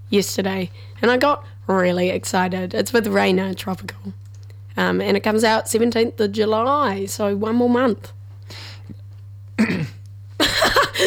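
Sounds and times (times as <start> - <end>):
speech: 0.1 - 4.2, 4.8 - 8.7, 9.6 - 10.0
person coughing from choking on spit: 9.6 - 11.0.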